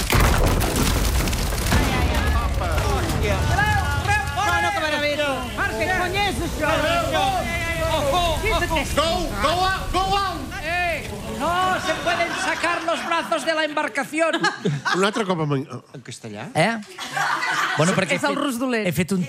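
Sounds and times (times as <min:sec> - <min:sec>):
barrel bursting as its hoops burst: 0:00.0 - 0:05.6
speech: 0:06.4 - 0:10.6, 0:11.4 - 0:19.2
laughter: 0:11.1 - 0:15.9, 0:16.8 - 0:19.2.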